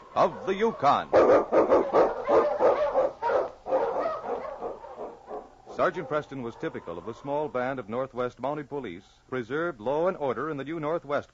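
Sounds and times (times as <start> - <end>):
pack of husky sled dogs barking and yelping: 0.0 - 8.0
speech: 0.2 - 2.0, 5.8 - 11.3.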